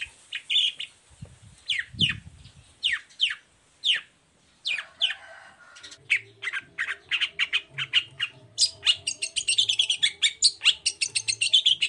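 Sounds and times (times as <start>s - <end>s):
long-tailed shrike singing: 2.8s - 11.8s.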